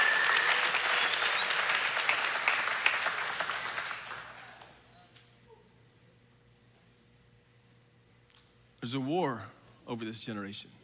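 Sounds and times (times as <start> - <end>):
audience applause: 0.0 - 4.7
speech: 8.8 - 10.8.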